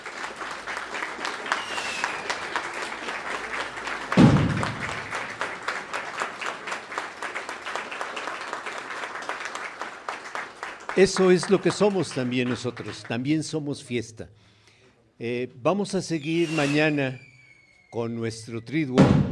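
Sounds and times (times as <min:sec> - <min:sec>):
audience applause: 0:00.0 - 0:13.4
speech: 0:11.0 - 0:14.6, 0:15.2 - 0:17.3, 0:17.9 - 0:19.3.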